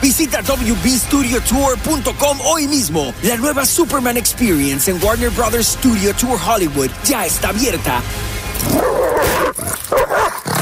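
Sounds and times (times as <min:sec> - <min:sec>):
speech: 0:00.0 - 0:10.0
dog snarling, growling and barking while biting a person: 0:08.6 - 0:10.6.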